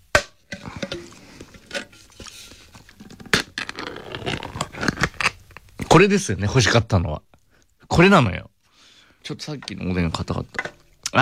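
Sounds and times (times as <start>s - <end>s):
packet of seaweed being opened: 2.2s - 5.8s
speech: 6.0s - 7.3s, 8.0s - 8.5s, 9.3s - 10.8s.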